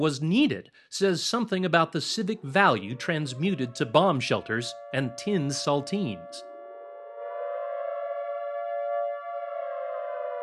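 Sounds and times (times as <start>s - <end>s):
speech: 0.0s - 6.5s
air raid siren wailing: 2.3s - 10.4s.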